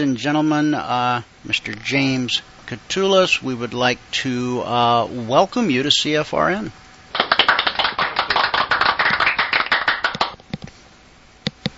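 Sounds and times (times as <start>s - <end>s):
speech: 0.0s - 6.8s
cheesy smattering of applause sound effect: 7.1s - 10.4s.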